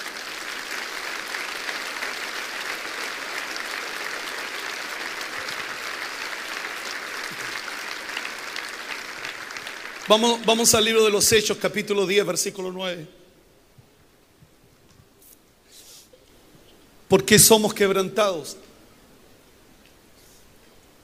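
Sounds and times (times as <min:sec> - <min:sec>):
sustained applause from a large audience: 0:00.0 - 0:11.4
speech: 0:10.1 - 0:13.2, 0:17.2 - 0:18.7.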